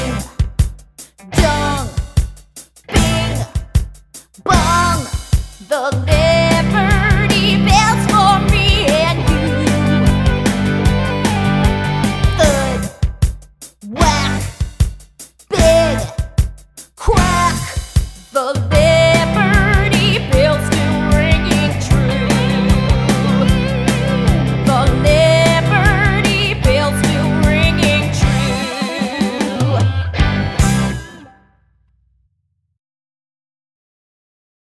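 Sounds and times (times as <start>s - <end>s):
person singing: 1.4s - 2.0s, 2.9s - 3.6s, 4.5s - 13.1s, 13.9s - 14.6s, 15.5s - 16.2s, 17.0s - 31.3s.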